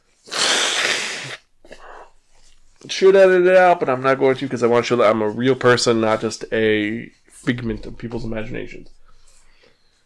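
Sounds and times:
person blowing nose: 0.2 - 2.1
speech: 2.8 - 9.0.

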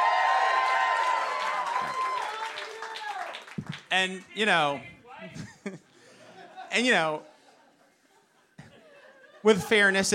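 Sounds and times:
crowd cheering and whooping: 0.0 - 3.7
applause: 0.0 - 4.3
speech: 3.9 - 5.8, 6.8 - 7.3, 9.4 - 10.1
laughter: 5.2 - 10.1.

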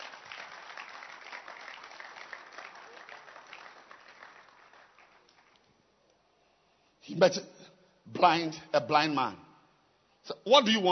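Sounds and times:
audience clapping hands: 0.0 - 5.9
speech: 7.1 - 7.5, 8.2 - 9.4, 10.2 - 10.9.

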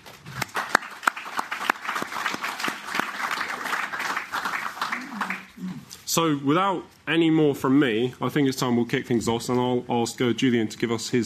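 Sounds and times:
audience applause welcoming a debate panel: 0.0 - 5.6
speech: 6.1 - 11.2.

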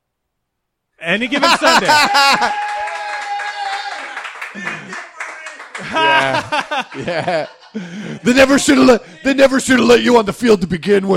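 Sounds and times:
speech: 1.0 - 2.7, 4.5 - 4.8, 5.8 - 11.1
laughter: 1.2 - 9.6
crowd shouting and whooping: 1.3 - 6.9
audience applause: 1.5 - 7.5.

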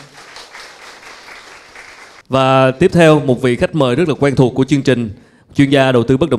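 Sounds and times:
audience applause: 0.0 - 2.3
speech: 2.3 - 6.3.

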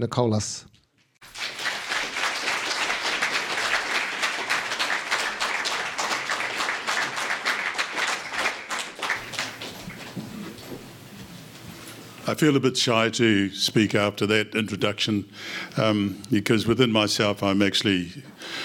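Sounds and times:
speech: 0.0 - 1.5, 12.3 - 18.4
audience applause at an outdoor event in Alex Moore Park, Wellington: 1.2 - 10.8.

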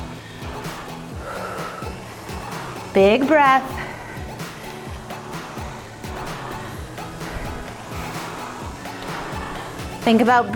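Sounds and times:
rowing machine flywheel whirring: 0.0 - 10.5
soft rhythmic swooshes: 0.0 - 10.5
speech: 3.0 - 3.8, 10.1 - 10.5.

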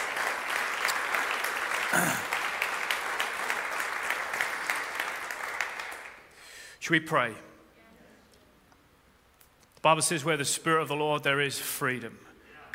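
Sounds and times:
church congregation applauding in welcome of a family: 0.0 - 6.4
speech: 1.9 - 2.3, 6.9 - 7.5, 9.8 - 12.7.

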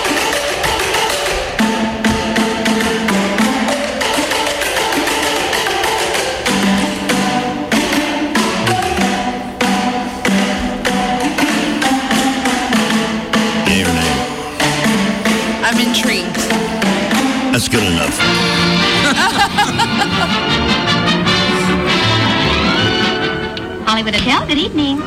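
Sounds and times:
all-percussion drum ensemble music: 0.0 - 25.0
laughter: 17.8 - 20.8
speech: 24.0 - 25.0.

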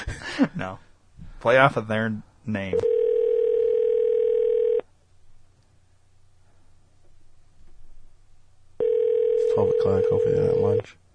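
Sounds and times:
faint low hum: 0.0 - 11.1
speech: 0.4 - 3.0, 9.8 - 11.0
telephone ringback tone before voicemail: 2.8 - 4.8, 8.8 - 10.8.

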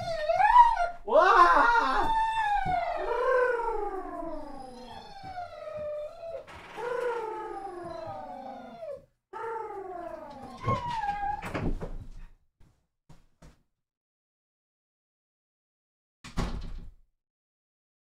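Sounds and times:
dog whining and half-howling: 0.0 - 11.5.

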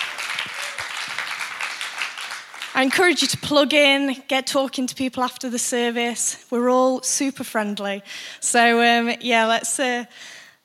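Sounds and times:
church congregation applause welcoming first-time visitors: 0.0 - 2.9
speech: 2.8 - 10.4.

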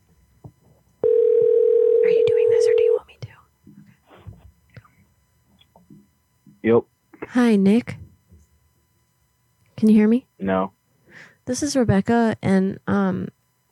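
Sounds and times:
telephone tone while placing a call: 1.0 - 3.0
speech: 6.7 - 8.0, 9.8 - 13.4.

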